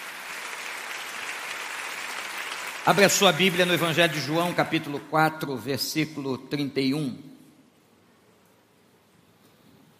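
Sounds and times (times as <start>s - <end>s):
congregation clapping to greet people: 0.0s - 5.2s
speech: 2.8s - 7.3s.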